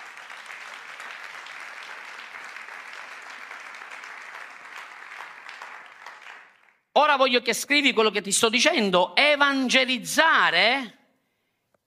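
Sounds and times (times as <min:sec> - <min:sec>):
audience applause: 0:00.0 - 0:06.8
speech: 0:07.0 - 0:11.0.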